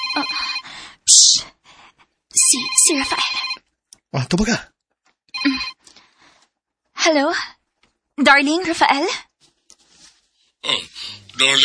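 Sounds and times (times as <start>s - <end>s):
cellphone ringtone: 0.0s - 0.7s, 2.4s - 3.6s, 5.4s - 5.8s
speech: 0.2s - 0.5s, 2.5s - 4.7s, 7.1s - 7.6s, 8.2s - 9.3s, 10.6s - 11.6s.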